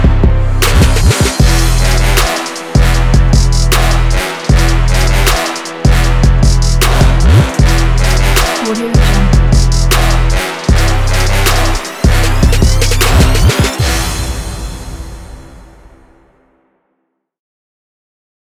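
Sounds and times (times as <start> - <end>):
trap beat: 0.0 - 14.1.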